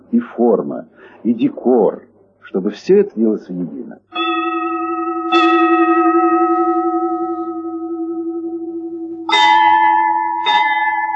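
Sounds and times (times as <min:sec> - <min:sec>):
speech: 0:00.1 - 0:04.1
crystal glass ringing: 0:04.1 - 0:11.1.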